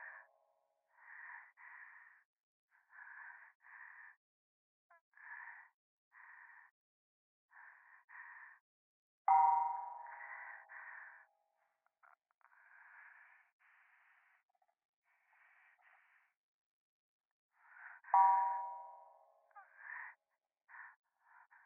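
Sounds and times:
breathing on the left ear at a temple: 0.9s - 4.2s, 5.1s - 6.8s, 7.5s - 8.6s, 9.3s - 11.3s, 12.4s - 16.4s, 17.6s - 19.0s, 19.6s - 21.6s.

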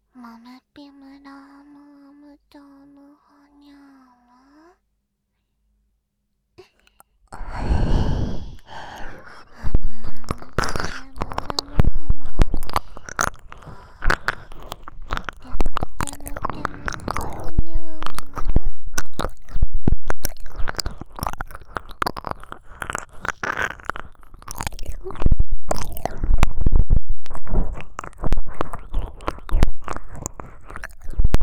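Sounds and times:
ear licking sounds: 6.7s - 31.4s.

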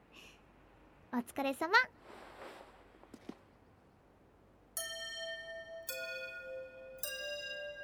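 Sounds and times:
speech: 1.2s - 2.0s
soft rustle: 1.9s - 3.6s
school chime ringing: 4.8s - 7.8s.

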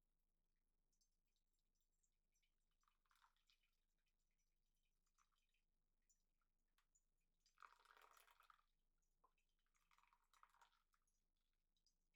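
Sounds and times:
coffee brewing: 2.8s - 3.5s, 7.5s - 8.7s, 9.3s - 11.1s.

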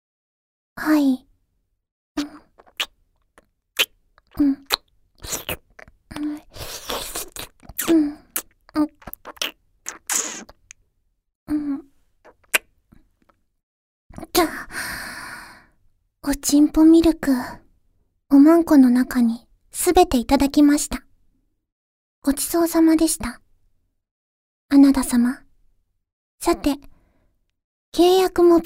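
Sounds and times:
speech: 0.8s - 1.2s, 2.2s - 2.4s, 4.4s - 4.6s, 16.5s - 17.6s, 18.3s - 21.0s, 22.2s - 23.4s, 24.7s - 25.4s, 26.4s - 26.9s, 27.9s - 28.6s
kissing lip smacks: 2.2s - 10.8s, 12.3s - 13.4s.

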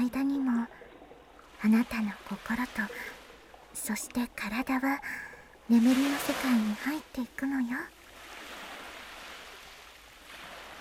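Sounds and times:
ocean waves: 0.0s - 10.7s
speech: 1.6s - 3.2s, 3.8s - 8.0s.

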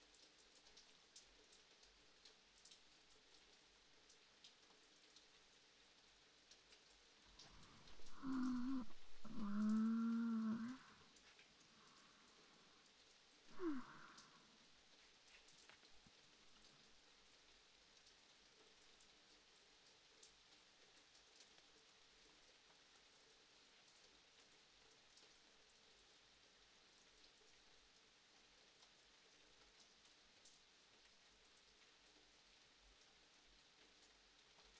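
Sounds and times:
rain: 0.0s - 34.7s
person reading a book: 7.7s - 10.9s.

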